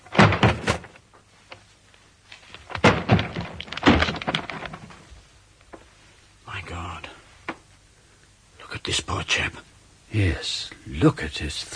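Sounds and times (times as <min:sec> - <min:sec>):
wooden door being battered down: 0:00.0 - 0:01.0, 0:02.7 - 0:05.0
speech: 0:08.9 - 0:11.7.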